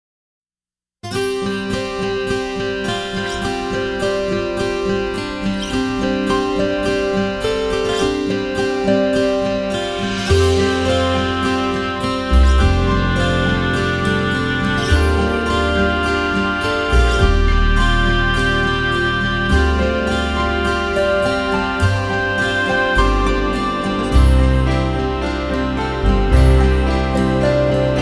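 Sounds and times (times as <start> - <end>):
oboe: 1.2 - 28.0.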